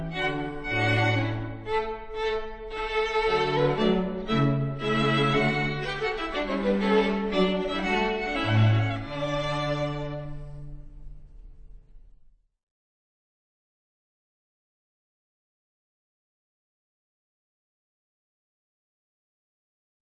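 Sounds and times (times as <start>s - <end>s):
instrumental piece: 0.0s - 11.9s.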